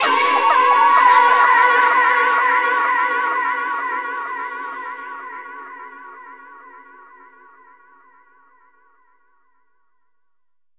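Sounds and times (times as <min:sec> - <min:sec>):
reverb atmospheres: 0:00.0 - 0:08.2.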